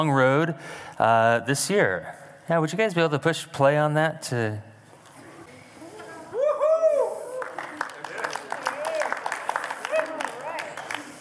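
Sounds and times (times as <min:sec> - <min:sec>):
speech: 0:00.0 - 0:04.7
smattering of applause: 0:06.8 - 0:11.1.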